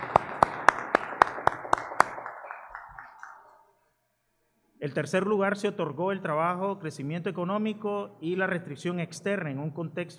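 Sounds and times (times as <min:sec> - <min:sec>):
audience applause: 0:00.0 - 0:03.8
speech: 0:04.8 - 0:10.1.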